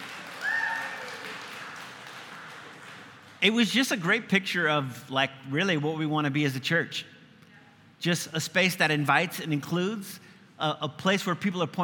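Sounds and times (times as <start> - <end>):
audience applause: 0.0 - 3.4
high cheer or whistle: 0.2 - 1.6
speech: 3.4 - 7.1, 8.0 - 11.8.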